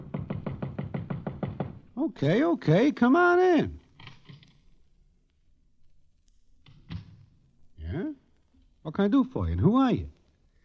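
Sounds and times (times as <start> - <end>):
knocking on a hotel room door: 0.0 - 1.9
speech: 2.0 - 3.8, 8.9 - 10.2.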